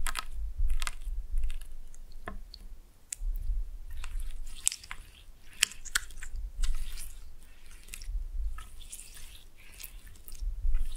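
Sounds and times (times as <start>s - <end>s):
steady low rumble: 0.0s - 1.7s, 3.2s - 4.4s, 8.1s - 8.6s, 10.4s - 10.9s
slime squished and stretched: 0.0s - 10.9s.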